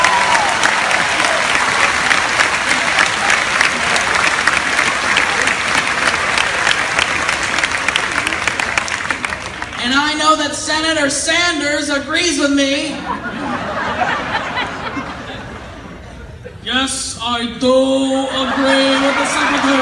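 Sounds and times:
applause: 0:00.0 - 0:09.8
speech: 0:10.7 - 0:13.5, 0:16.7 - 0:19.8
laughter: 0:12.8 - 0:16.7, 0:18.0 - 0:19.8.

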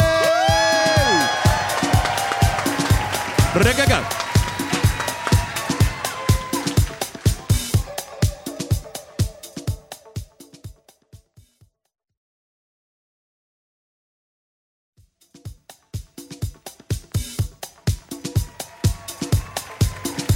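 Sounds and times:
audience applause: 0:00.0 - 0:09.3, 0:18.2 - 0:20.3.

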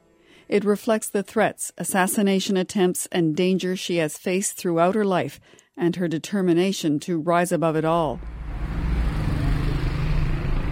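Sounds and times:
speech: 0:00.5 - 0:08.4
traffic rumble on a busy road in Kabul: 0:08.2 - 0:10.7.

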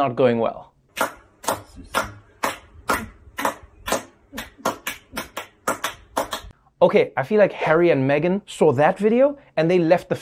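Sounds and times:
speech: 0:00.0 - 0:01.2, 0:06.8 - 0:10.2
slow uneven hand clapping: 0:00.9 - 0:06.5.

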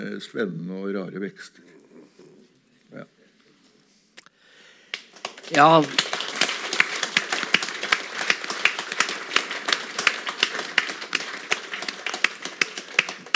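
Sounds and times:
speech: 0:00.0 - 0:01.8, 0:02.9 - 0:03.2, 0:05.5 - 0:06.1
audience clapping: 0:04.9 - 0:13.3.

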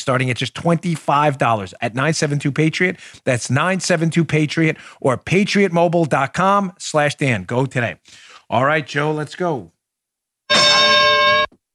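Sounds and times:
speech: 0:00.0 - 0:09.8
bright metallic bell ding: 0:10.5 - 0:11.6.

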